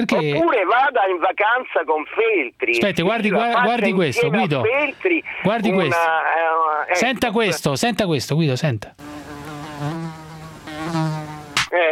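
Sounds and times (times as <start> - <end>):
speech: 0.0 - 9.2
mosquito buzzing: 9.0 - 11.7.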